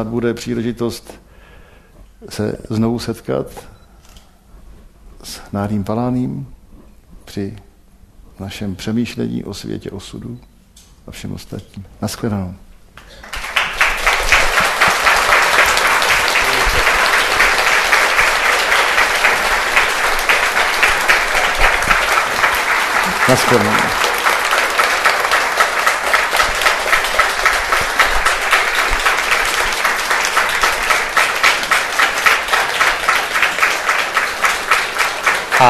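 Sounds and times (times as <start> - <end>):
speech: 0.0 - 1.2, 2.2 - 3.8, 5.2 - 6.6, 7.3 - 7.7, 8.4 - 10.5, 11.1 - 13.3, 23.3 - 24.1
audience applause: 13.0 - 35.6.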